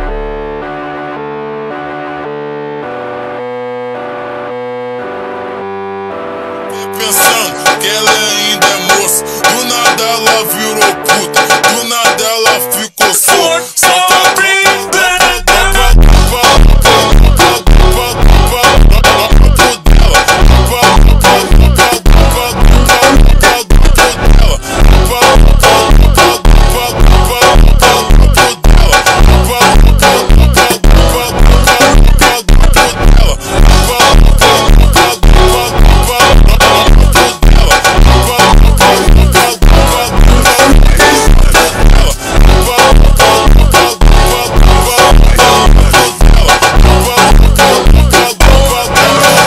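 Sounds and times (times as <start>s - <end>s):
slowed funk music: 6.2s - 49.4s.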